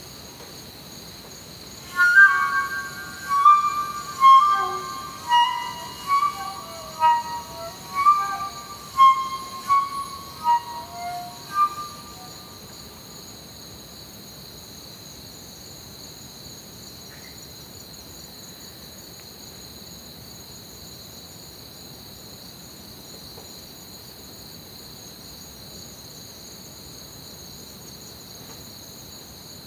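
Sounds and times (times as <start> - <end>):
crickets trilling: 1.6 - 12.6
low rumbling hiss: 1.8 - 12.4.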